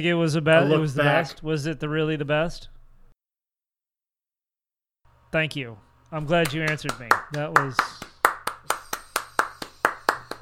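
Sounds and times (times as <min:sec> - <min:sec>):
speech: 0:00.0 - 0:02.8, 0:05.3 - 0:08.0
single audience member clapping: 0:06.3 - 0:10.4.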